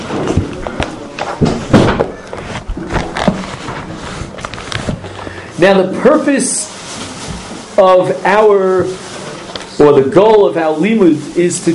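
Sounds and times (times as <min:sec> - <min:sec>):
shuffling and scraping: 0:00.0 - 0:11.7
dull thuds and knocks from a chair being dropped: 0:01.3 - 0:03.4
speech: 0:05.6 - 0:06.6, 0:07.8 - 0:09.0, 0:09.8 - 0:11.7.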